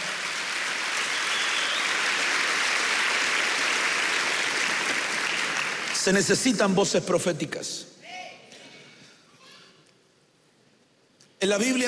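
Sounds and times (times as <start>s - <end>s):
audience clapping: 0.0s - 6.5s
speech: 6.0s - 8.0s, 11.4s - 11.8s.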